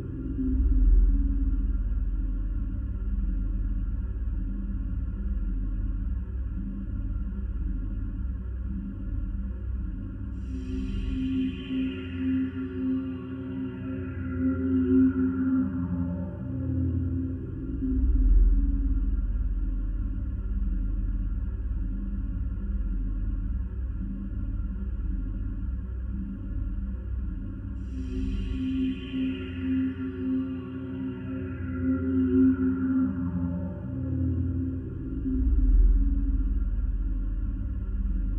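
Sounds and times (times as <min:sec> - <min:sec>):
ambience: 0:00.0 - 0:38.3.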